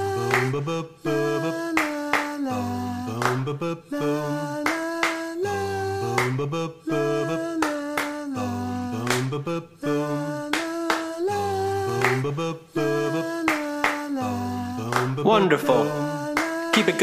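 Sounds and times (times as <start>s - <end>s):
rhythmic hand claps: 0.2s - 0.6s, 1.7s - 2.5s, 3.1s - 3.5s, 4.6s - 5.5s, 6.1s - 6.5s, 7.6s - 8.3s, 9.0s - 9.4s, 10.4s - 17.0s
speech: 0.4s - 1.8s, 2.5s - 4.8s, 6.4s - 7.6s, 9.4s - 10.3s, 12.2s - 13.5s, 14.2s - 16.1s, 16.8s - 17.0s.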